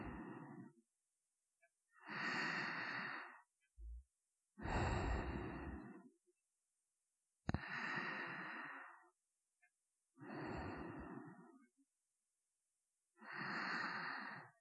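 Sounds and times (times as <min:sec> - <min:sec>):
person breathing in sleep: 0:00.0 - 0:00.8, 0:02.0 - 0:04.0, 0:04.6 - 0:06.1, 0:07.5 - 0:09.1, 0:10.2 - 0:11.7, 0:13.2 - 0:14.5.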